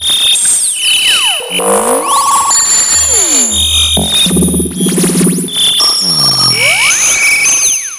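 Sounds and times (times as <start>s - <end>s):
modular synth sound effects: 1.0s - 7.9s.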